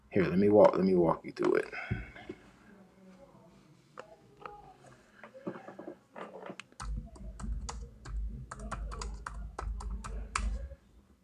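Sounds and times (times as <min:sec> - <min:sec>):
speech: 0:00.2 - 0:02.1
typing a Google search on a computer keyboard: 0:06.7 - 0:10.7.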